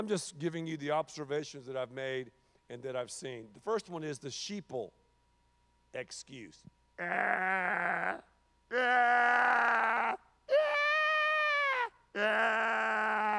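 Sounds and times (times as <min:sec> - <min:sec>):
speech: 0:00.0 - 0:05.0, 0:05.9 - 0:10.7, 0:12.2 - 0:13.3
human voice imitating a sick sheep bleating: 0:07.0 - 0:13.3.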